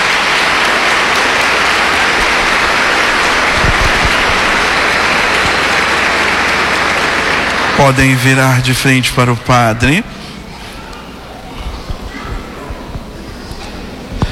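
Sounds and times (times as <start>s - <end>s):
applause: 0.0s - 10.0s
speech: 7.8s - 10.2s.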